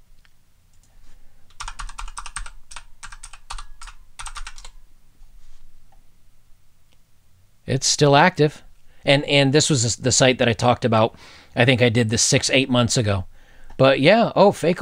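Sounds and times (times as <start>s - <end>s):
website address typed on a computer keyboard: 1.5s - 4.8s
speech: 7.7s - 14.7s.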